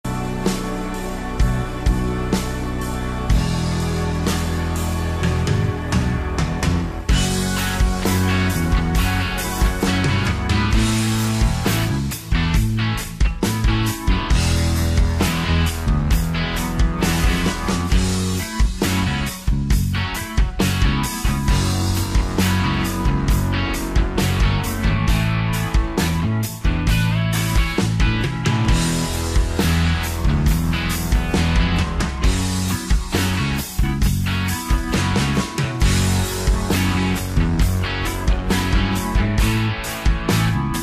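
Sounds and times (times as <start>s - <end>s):
rock solo backing track: 0.0s - 40.8s.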